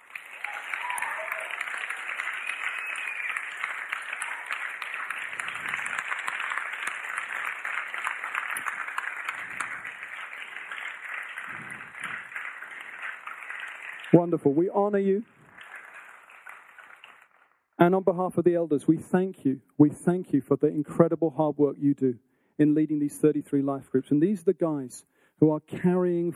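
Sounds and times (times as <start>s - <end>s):
crowd applauding: 0.0s - 17.6s
speech: 14.2s - 15.4s, 17.9s - 26.3s.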